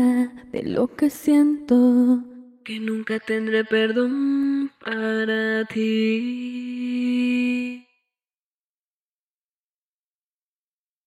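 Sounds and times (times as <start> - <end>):
a cappella pop vocals in B minor: 0.0 - 8.0.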